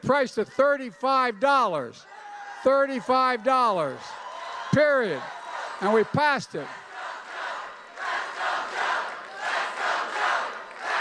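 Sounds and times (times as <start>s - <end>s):
speech: 0.0s - 6.8s
crowd cheering and shouting: 0.1s - 10.9s.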